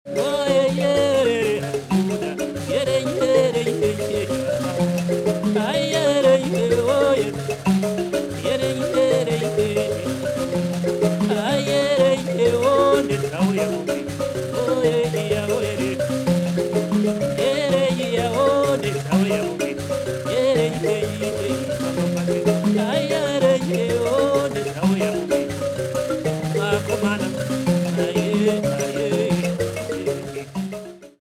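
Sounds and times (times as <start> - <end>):
mbira: 0.1 - 31.1.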